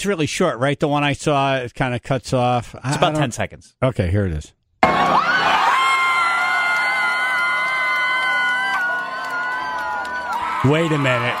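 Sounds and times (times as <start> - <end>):
speech: 0.0 - 5.3, 10.6 - 11.3
stadium crowd roaring and cheering: 4.8 - 11.3.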